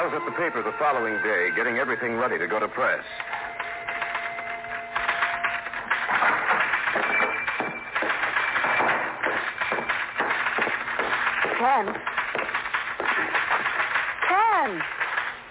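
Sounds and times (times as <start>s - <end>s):
speech: 0.1s - 3.3s
typewriter clattering at a newspaper: 3.2s - 15.3s.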